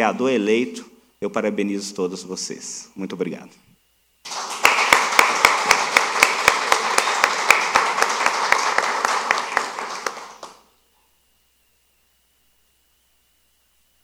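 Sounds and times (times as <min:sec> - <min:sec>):
speech: 0:00.0 - 0:03.7
audience applause for honored women in the Ouro Preto municipal chamber: 0:04.2 - 0:10.7.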